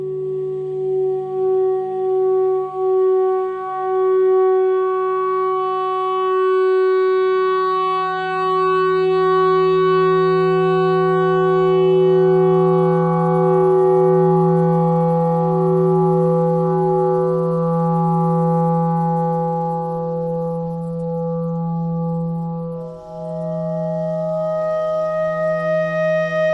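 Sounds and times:
noise: 0.0 - 26.5
clarinet notes: 10.3 - 26.5.

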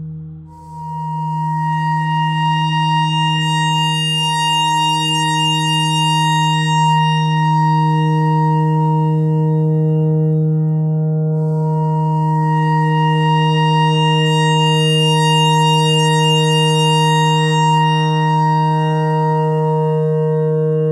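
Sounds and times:
clarinet notes: 0.6 - 20.8.

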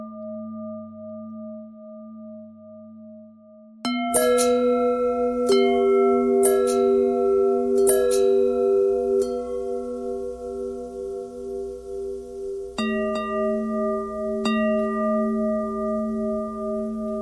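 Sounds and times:
longbell bells ringing: 3.9 - 17.2.

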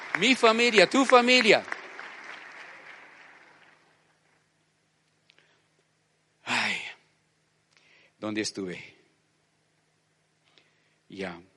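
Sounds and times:
audience applause: 0.0 - 4.2
speech: 0.2 - 1.7, 8.3 - 9.0, 11.1 - 11.5.

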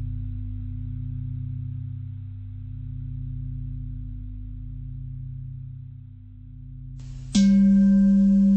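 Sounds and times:
bells ringing: 7.4 - 8.5.

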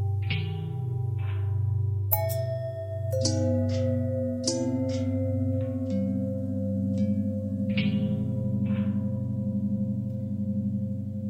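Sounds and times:
long bell twist: 0.0 - 11.2.

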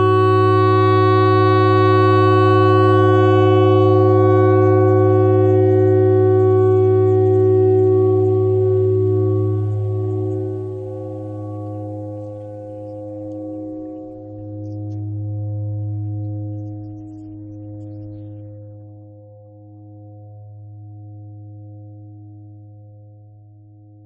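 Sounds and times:
clarinet notes: 0.0 - 14.2.

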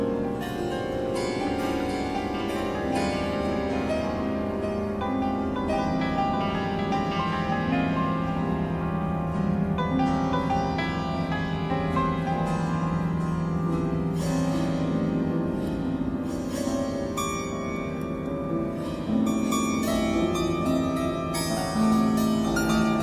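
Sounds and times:
piano string noise: 0.0 - 23.0.

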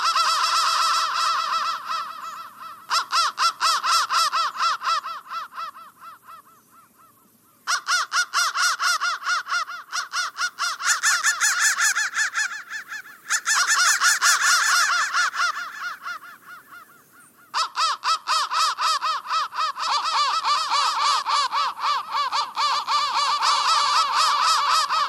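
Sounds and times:
crows cawing: 0.0 - 25.0.

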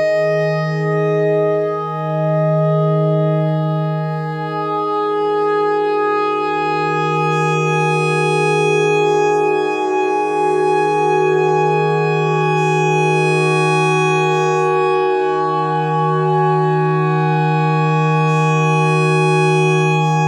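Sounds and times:
clarinet notes: 0.0 - 20.2.

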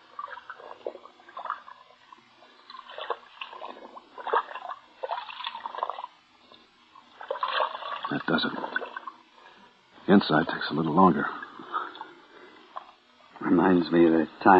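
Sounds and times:
object soaking in a water bucket: 0.0 - 9.8
speech: 8.2 - 8.8, 10.1 - 11.4, 13.5 - 14.5.

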